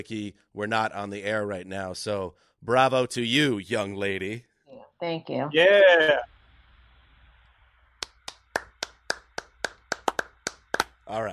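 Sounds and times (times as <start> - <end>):
speech: 0.0 - 6.3, 11.1 - 11.3
quiet golf clap: 8.0 - 11.0.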